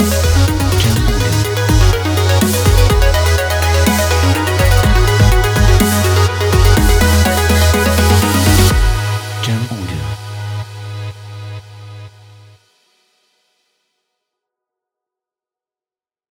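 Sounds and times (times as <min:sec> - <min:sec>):
upbeat sport EDM: 0:00.0 - 0:12.0.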